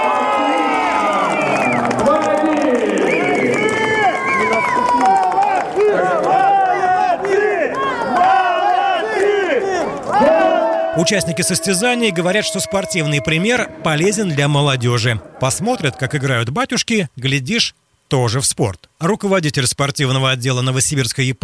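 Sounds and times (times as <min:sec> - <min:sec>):
crowd shouting in support of a team: 0:00.0 - 0:15.4
speech: 0:11.0 - 0:21.4.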